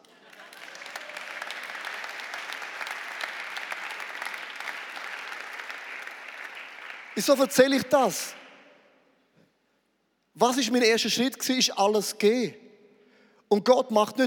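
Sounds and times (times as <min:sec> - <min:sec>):
audience applause: 0:00.0 - 0:07.5
speech: 0:07.2 - 0:08.4, 0:10.4 - 0:12.6, 0:13.5 - 0:14.2.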